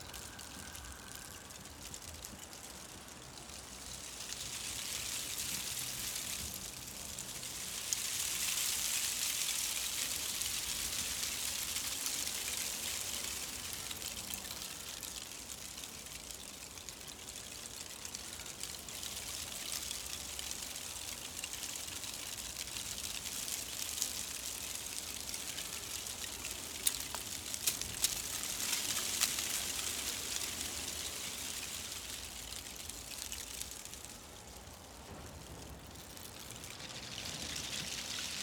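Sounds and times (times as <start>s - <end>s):
leaves skittering: 0.0s - 38.4s.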